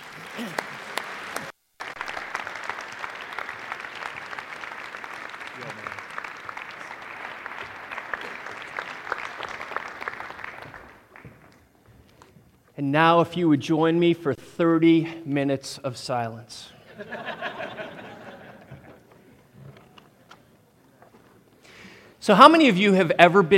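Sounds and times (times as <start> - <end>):
audience applause welcoming a speaker at a morning chapel service: 0.0 - 11.6
speech: 12.8 - 17.4, 22.3 - 23.5
laughter: 16.9 - 19.4.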